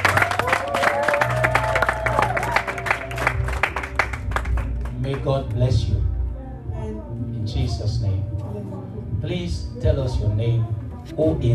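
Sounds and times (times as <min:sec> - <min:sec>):
audience clapping: 0:00.0 - 0:05.6
low bass hum: 0:00.0 - 0:11.5
speech: 0:05.3 - 0:06.1, 0:07.5 - 0:11.5.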